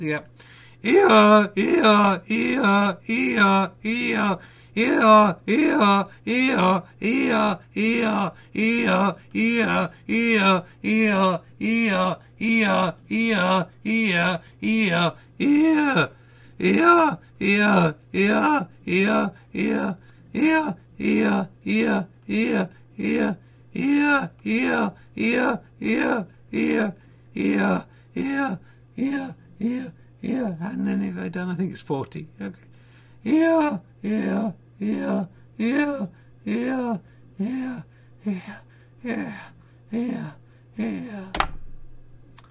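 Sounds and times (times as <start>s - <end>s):
speech: 0.0s - 41.5s
voice imitating a donkey's Eeyore bray: 0.8s - 30.8s, 33.3s - 37.0s.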